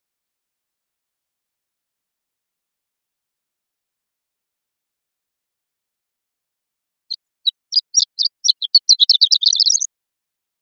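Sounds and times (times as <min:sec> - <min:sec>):
horned lark singing: 0:07.1 - 0:09.9.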